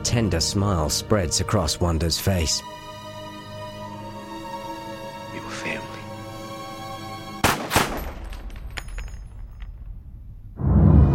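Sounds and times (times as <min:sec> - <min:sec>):
speech: 0:00.0 - 0:02.9
gunshots fired at point-blank range: 0:07.4 - 0:08.3.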